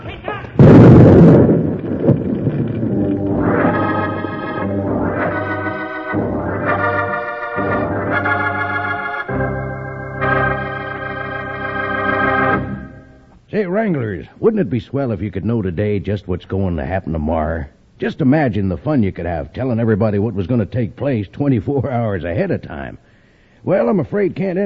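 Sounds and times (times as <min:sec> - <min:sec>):
gunshot in a radio drama: 0:00.6 - 0:04.8
dynamite explosion in a radio drama: 0:00.6 - 0:08.4
music: 0:03.0 - 0:13.3
speech: 0:13.8 - 0:23.0, 0:23.6 - 0:24.6.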